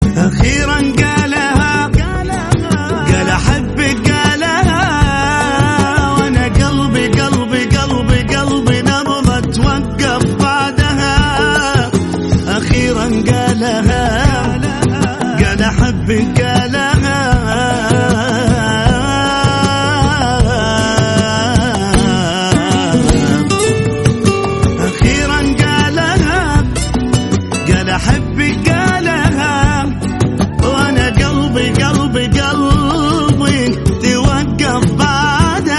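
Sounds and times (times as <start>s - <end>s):
islamic song: 0.0s - 35.7s.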